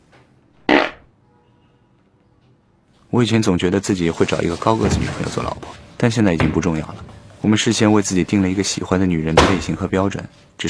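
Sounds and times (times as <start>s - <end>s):
fart: 0.7s - 1.1s
speech: 3.1s - 10.6s.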